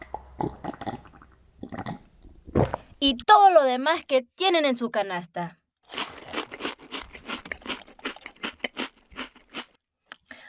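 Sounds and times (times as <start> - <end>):
speech: 0.4 - 0.8, 3.0 - 5.6
person eating a sandwich, chewing and crunching: 5.9 - 9.8.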